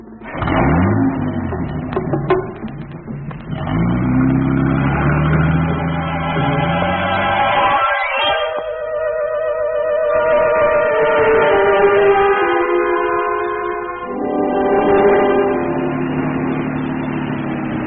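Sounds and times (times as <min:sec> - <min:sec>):
car engine revving and accelerating away: 0:00.0 - 0:17.8
rattling clatter: 0:00.2 - 0:06.8.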